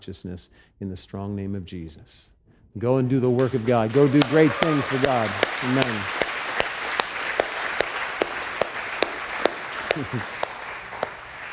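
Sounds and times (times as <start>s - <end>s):
speech: 0.0s - 6.2s, 10.0s - 10.4s
audience clapping: 3.4s - 11.5s.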